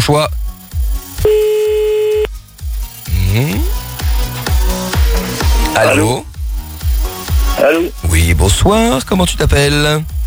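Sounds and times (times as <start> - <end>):
speech: 0.0 - 0.4, 3.3 - 3.8, 5.8 - 6.3, 7.6 - 10.1
rhythmic thumping beat: 0.0 - 10.2
outgoing telephone call ringback tone: 1.2 - 2.3.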